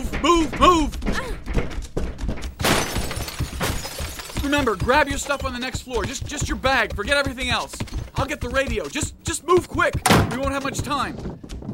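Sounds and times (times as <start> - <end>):
dull thumps: 0.0 - 11.7
speech: 0.2 - 1.2, 4.5 - 11.5
glass shattering: 2.5 - 5.6.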